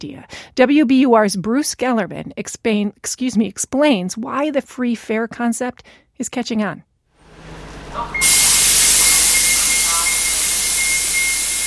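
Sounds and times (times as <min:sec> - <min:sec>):
speech: 0:00.0 - 0:06.9
37 city bus pulling into Lawrence Transportation Depot: 0:07.2 - 0:11.6.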